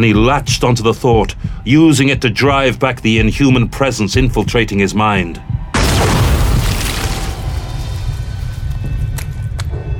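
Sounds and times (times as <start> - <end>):
speech: 0.0 - 5.5
alien creature exploding beside bridge consoles: 5.7 - 9.6.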